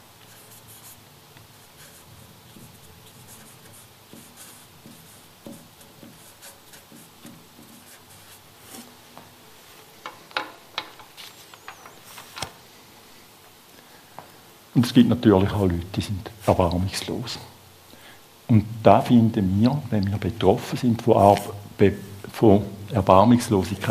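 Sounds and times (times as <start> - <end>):
writing by hand: 0.2 - 1.0, 1.6 - 8.9
speech: 14.8 - 17.5, 18.5 - 23.8.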